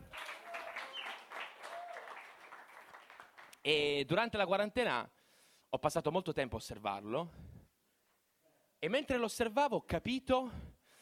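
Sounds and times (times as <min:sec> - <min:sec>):
audience applause: 0:00.0 - 0:03.6
faint tonal whistles: 0:00.2 - 0:02.3
speech: 0:03.6 - 0:07.5, 0:08.8 - 0:10.7.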